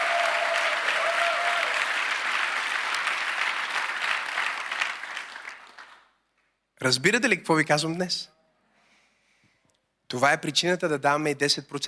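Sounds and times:
audience applauding: 0.0s - 6.1s
speech: 6.8s - 8.4s, 10.1s - 11.8s.

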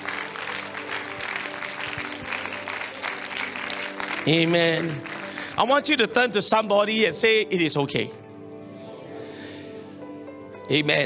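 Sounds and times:
audience clapping hands: 0.0s - 6.2s
speech: 4.2s - 8.2s, 10.7s - 11.0s.

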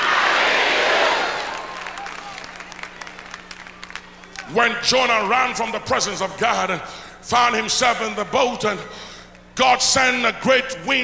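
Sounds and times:
audience shouting and cheering: 0.0s - 3.1s
scattered claps and whoops: 1.0s - 4.5s
speech: 4.5s - 9.0s, 9.6s - 11.0s.

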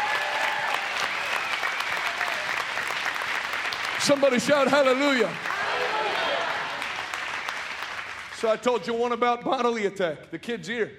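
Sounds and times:
audience applause: 0.0s - 8.6s
speech: 4.0s - 5.5s, 8.4s - 10.9s.

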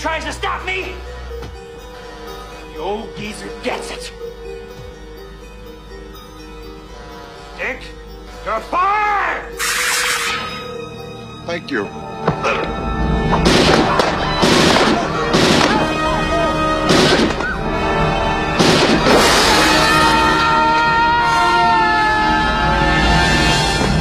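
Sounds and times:
sustained musical drone: 0.0s - 23.9s
speech: 2.8s - 4.3s, 7.6s - 9.7s, 11.5s - 13.5s
gunfire from the film RoboCop: 13.4s - 16.0s, 16.9s - 17.5s, 18.6s - 19.9s.

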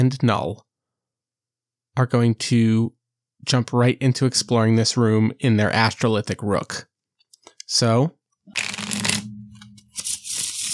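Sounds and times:
speech: 0.0s - 0.7s, 2.0s - 6.9s, 7.7s - 8.8s
playing cards flipped over on a tabletop game table: 8.6s - 10.7s.

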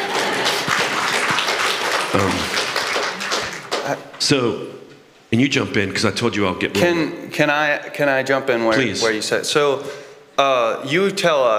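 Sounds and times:
audience applause: 0.0s - 4.2s
speech: 2.1s - 2.6s, 3.9s - 11.5s.

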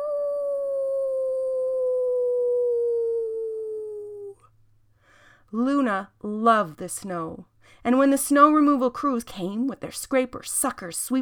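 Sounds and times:
husky puppy howling: 0.0s - 4.4s
speech: 5.5s - 11.2s.

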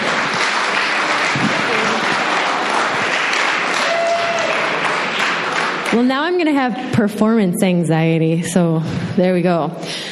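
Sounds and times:
audience applause: 0.0s - 6.0s
speech: 5.9s - 10.1s.

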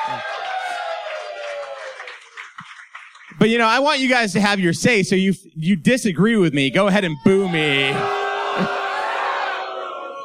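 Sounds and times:
audience cheering: 0.0s - 4.2s, 6.7s - 10.2s
speech: 3.4s - 8.8s.

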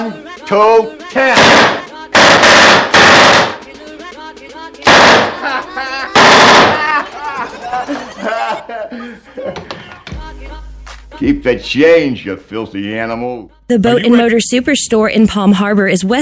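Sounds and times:
speech: 0.0s - 1.8s, 5.4s - 10.6s, 11.2s - 16.1s
rapid machine-gun fire: 1.4s - 3.6s, 4.8s - 5.4s, 6.2s - 7.0s
man talking and chuckling: 6.8s - 10.1s.

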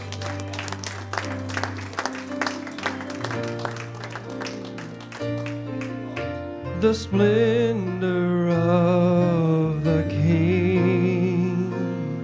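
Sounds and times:
audience clapping in praise: 0.0s - 6.4s
sustained keyboard chords: 0.0s - 12.2s
speech: 6.8s - 10.4s.

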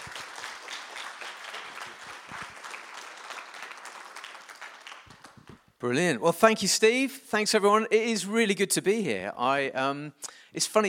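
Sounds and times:
audience applause: 0.0s - 5.7s
speech: 5.8s - 10.8s.

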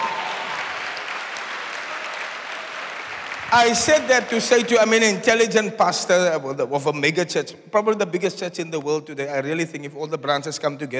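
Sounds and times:
crowd clapping: 0.0s - 5.2s
speech: 3.5s - 10.9s.

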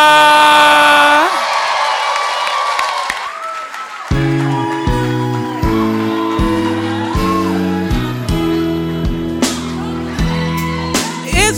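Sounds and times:
audience clapping and cheering: 0.0s - 11.4s.

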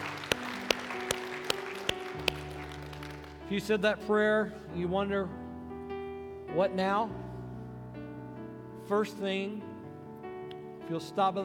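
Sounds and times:
audience hand clapping: 0.0s - 3.4s
speech: 3.5s - 5.4s, 6.6s - 7.2s, 8.9s - 9.7s, 10.9s - 11.4s.

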